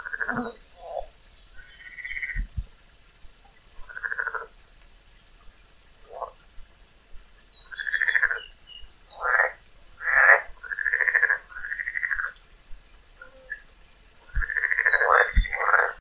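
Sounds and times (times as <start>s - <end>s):
frog: 0.0s - 2.5s, 3.8s - 4.5s, 6.1s - 6.4s, 7.6s - 12.4s, 13.2s - 13.7s, 14.3s - 15.9s.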